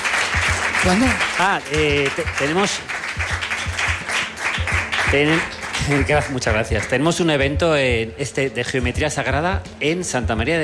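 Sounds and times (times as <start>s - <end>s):
audience applauding: 0.0s - 7.1s
speech: 0.8s - 3.3s, 5.1s - 10.6s.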